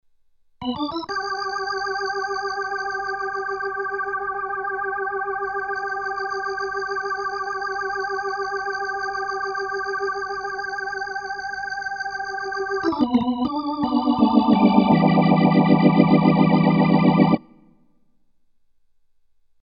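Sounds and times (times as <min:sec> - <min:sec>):
drawbar organ settings on Kawai MP7SE stage piano: 0:00.6 - 0:17.5.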